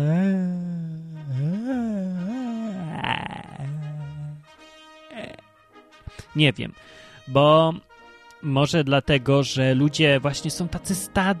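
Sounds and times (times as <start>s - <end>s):
person yawning: 0.0s - 4.5s, 5.1s - 5.4s
speech: 6.4s - 11.3s.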